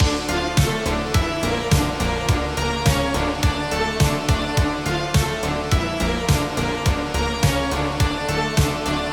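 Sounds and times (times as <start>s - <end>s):
looping song: 0.0s - 9.1s.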